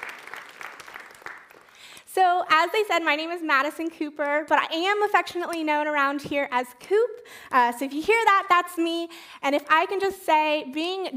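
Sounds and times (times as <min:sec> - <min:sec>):
audience applause: 0:00.0 - 0:02.0
speech: 0:02.1 - 0:11.1.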